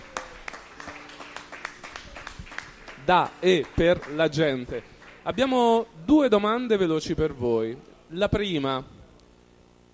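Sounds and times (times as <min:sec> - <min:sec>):
audience applause: 0:00.0 - 0:05.4
speech: 0:03.1 - 0:08.9.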